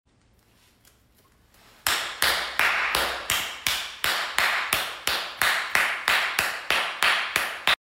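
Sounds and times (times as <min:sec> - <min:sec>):
clapping without hands: 0:01.8 - 0:07.8.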